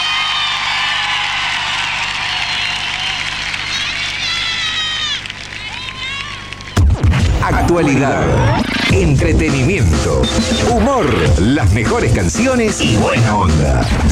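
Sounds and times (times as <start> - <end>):
shrill whistles: 0.0 - 5.2
large crowd applause: 0.0 - 8.7
people cheering: 0.0 - 11.3
speech: 7.7 - 14.0.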